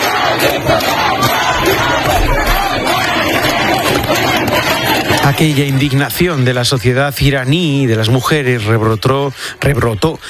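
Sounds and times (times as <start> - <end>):
street protest crowd chanting: 0.0 - 6.2
speech: 5.4 - 10.2.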